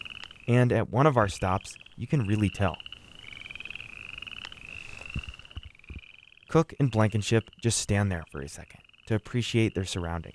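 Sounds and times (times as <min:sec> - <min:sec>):
sharp clicks: 0:00.0 - 0:07.7
frogs calling: 0:00.0 - 0:10.3
speech: 0:00.5 - 0:02.9, 0:06.5 - 0:10.3.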